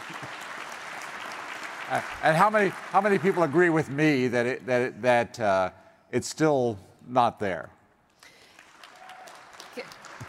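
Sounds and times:
audience applause: 0:00.0 - 0:04.5, 0:08.3 - 0:10.2
speech: 0:01.9 - 0:07.8.

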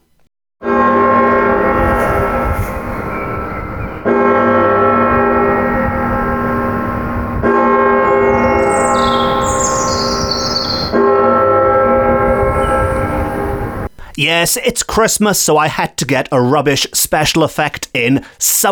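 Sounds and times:
clock bell striking midnight: 0:00.6 - 0:13.9
birds tweeting: 0:02.6 - 0:04.1, 0:08.1 - 0:11.0, 0:12.3 - 0:13.4
speech: 0:14.2 - 0:18.7.

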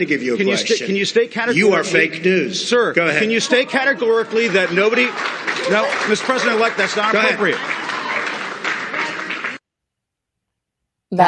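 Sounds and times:
speech: 0:00.0 - 0:07.8
laughter: 0:00.0 - 0:09.6
room audience applauding: 0:03.0 - 0:09.6.

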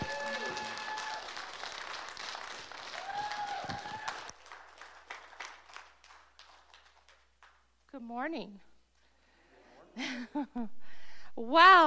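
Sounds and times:
audience at a church service applauding to welcome a speaker: 0:00.0 - 0:07.8
speech: 0:08.0 - 0:08.7, 0:10.0 - 0:10.8, 0:11.4 - 0:11.8.

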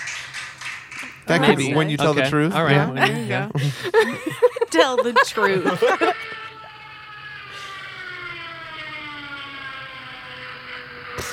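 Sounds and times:
speech: 0:01.2 - 0:06.3
laughter: 0:01.3 - 0:06.6
epic fail sound effect wailing tone sliding downward: 0:04.3 - 0:11.3.

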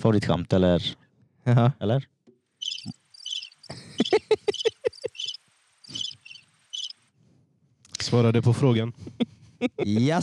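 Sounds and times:
speech: 0:00.0 - 0:02.1, 0:08.1 - 0:10.2
crickets chirping: 0:02.6 - 0:07.1
laughter: 0:03.7 - 0:05.2, 0:09.1 - 0:10.2.

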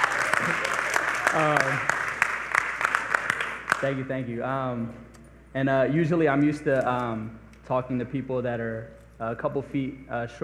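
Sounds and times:
cheer: 0:00.0 - 0:03.7
audience applause: 0:00.0 - 0:04.0
speech: 0:01.3 - 0:01.9, 0:03.8 - 0:10.4.

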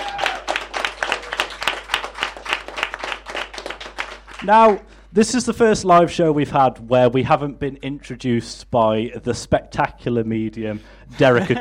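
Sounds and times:
crowd clapping: 0:00.0 - 0:04.9
speech: 0:04.4 - 0:11.6.

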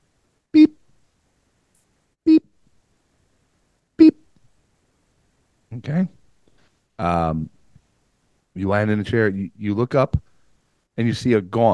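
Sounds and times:
short mid-pitched beeps: 0:00.6 - 0:00.8, 0:02.3 - 0:02.5
speech: 0:05.9 - 0:06.2, 0:07.0 - 0:07.6, 0:08.6 - 0:10.3, 0:11.0 - 0:11.7.

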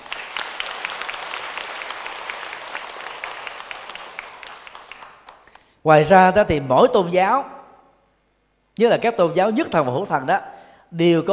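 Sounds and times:
audience applause: 0:00.0 - 0:05.5
speech: 0:05.8 - 0:07.6, 0:08.8 - 0:11.3.

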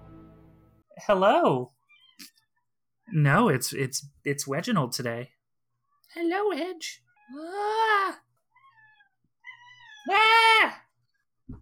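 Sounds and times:
speech: 0:01.0 - 0:02.4, 0:03.1 - 0:05.4, 0:06.1 - 0:08.2, 0:10.0 - 0:10.8
cat chirping cries: 0:01.8 - 0:02.5, 0:08.5 - 0:10.4
cat meowing loudly: 0:08.6 - 0:10.6.

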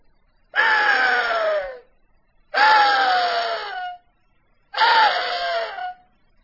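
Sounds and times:
latex-reed call imitating an axis deer buck screaming in rut: 0:00.6 - 0:01.8, 0:02.6 - 0:04.0, 0:04.8 - 0:06.0.

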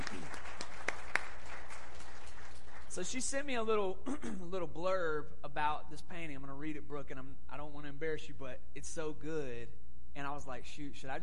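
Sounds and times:
audience round of applause: 0:00.0 - 0:03.0
speech: 0:03.0 - 0:11.2.

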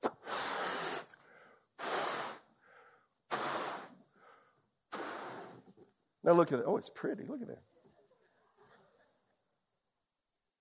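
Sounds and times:
person blowing up a balloon: 0:00.0 - 0:01.2, 0:01.8 - 0:02.5, 0:03.3 - 0:04.0, 0:04.9 - 0:05.7
person inhaling: 0:00.0 - 0:05.8
speech: 0:06.2 - 0:07.8.

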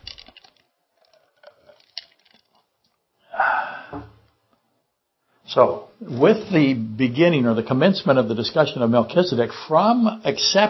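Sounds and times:
person drinking water: 0:00.0 - 0:04.4
breathy gulp and swallow: 0:00.9 - 0:02.9
speech: 0:05.5 - 0:10.6.

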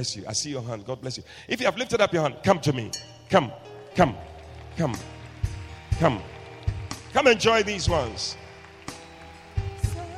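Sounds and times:
speech: 0:00.0 - 0:05.1, 0:06.0 - 0:06.3, 0:07.1 - 0:08.4
audience clapping: 0:03.8 - 0:10.1.

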